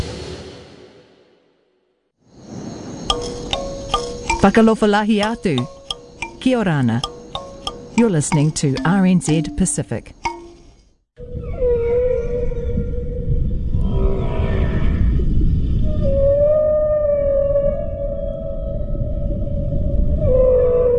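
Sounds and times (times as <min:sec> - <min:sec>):
speech: 0:04.4 - 0:05.8, 0:06.4 - 0:07.1, 0:08.0 - 0:10.2
southern right whale vocalizing: 0:11.2 - 0:20.9.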